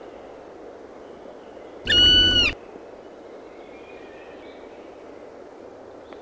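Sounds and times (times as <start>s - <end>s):
Black woodpecker giving fast repeated ringing calls: 1.9s - 2.6s.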